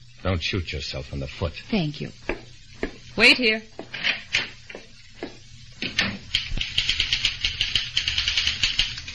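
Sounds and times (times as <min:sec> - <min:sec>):
speech: 0:00.3 - 0:02.4, 0:03.2 - 0:04.2
typewriter keys clacking: 0:06.3 - 0:09.1.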